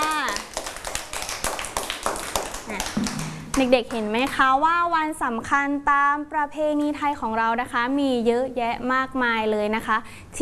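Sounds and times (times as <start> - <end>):
children clapping hands: 0.0 - 4.5
speech: 3.0 - 10.3.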